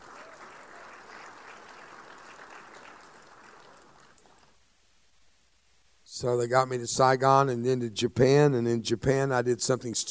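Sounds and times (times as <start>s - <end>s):
audience clapping: 0.0s - 4.6s
speech: 6.2s - 10.1s.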